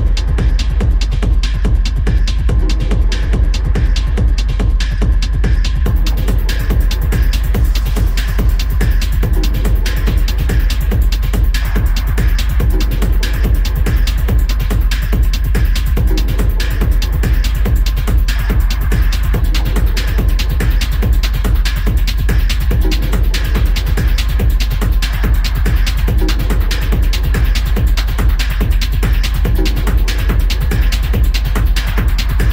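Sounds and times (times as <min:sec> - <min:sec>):
industrial techno noise music: 0:00.0 - 0:32.5.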